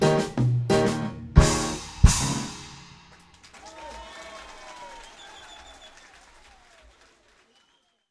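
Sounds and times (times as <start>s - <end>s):
rock music: 0.0s - 3.2s.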